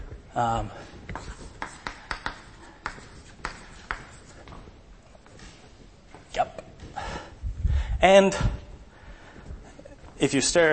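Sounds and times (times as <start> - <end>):
speech: 0.4 - 1.3, 8.0 - 8.5, 10.2 - 10.7
equations being written on a board during a lecture: 1.1 - 4.5.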